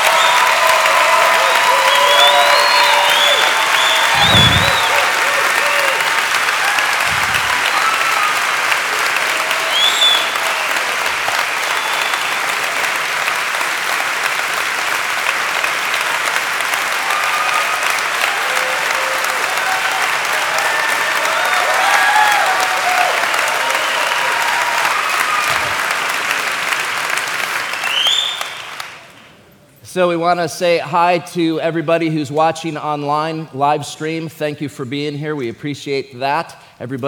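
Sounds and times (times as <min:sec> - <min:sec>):
audience applause at Grace Chapel: 0:00.0 - 0:29.3
speech: 0:30.0 - 0:37.0.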